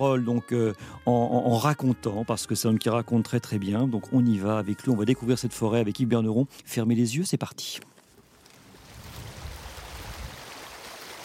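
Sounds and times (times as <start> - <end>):
speech: 0.0 - 7.9
glacial mountain torrent with milky silt-laden meltwater in a forest: 8.9 - 11.2.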